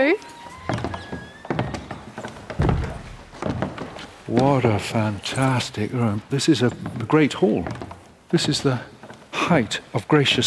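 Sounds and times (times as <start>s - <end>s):
speech: 0.0s - 0.4s, 4.3s - 10.4s
heavy oak door opening and closing: 0.3s - 4.4s.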